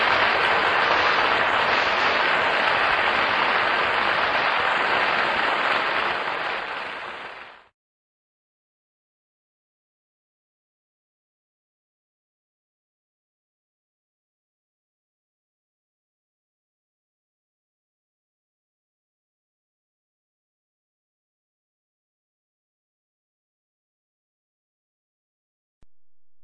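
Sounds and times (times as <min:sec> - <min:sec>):
applause: 0:00.0 - 0:07.8.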